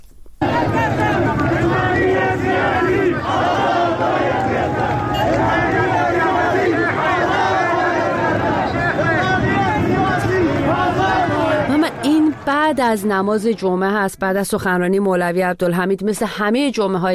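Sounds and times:
street protest crowd chanting: 0:00.4 - 0:13.7
speech: 0:12.7 - 0:17.1.

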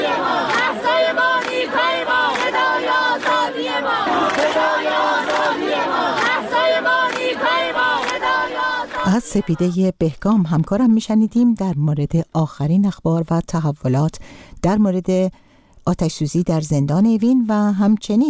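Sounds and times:
crowd of students chanting protest slogans: 0:00.0 - 0:09.7
speech: 0:09.1 - 0:18.2.

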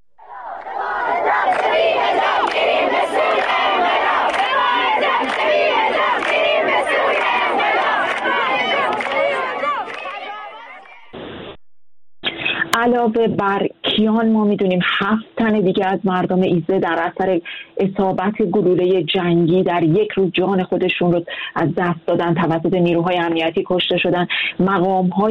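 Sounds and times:
crowd chanting slogans: 0:00.2 - 0:11.2
people clapping: 0:00.2 - 0:11.2
speech: 0:12.9 - 0:25.2.

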